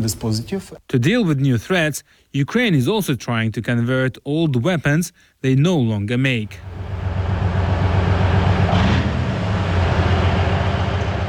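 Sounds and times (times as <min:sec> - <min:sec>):
speech: 0:00.0 - 0:07.0
OSA anti-aircraft missile system Soviet wheeled armored vehicle driving: 0:06.6 - 0:11.2.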